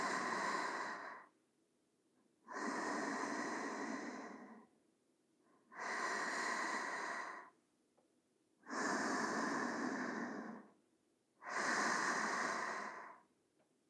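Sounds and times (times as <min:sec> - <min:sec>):
sleeping breathing: 0:00.0 - 0:01.3, 0:02.5 - 0:04.8, 0:05.6 - 0:07.6, 0:08.6 - 0:10.8, 0:11.4 - 0:13.3.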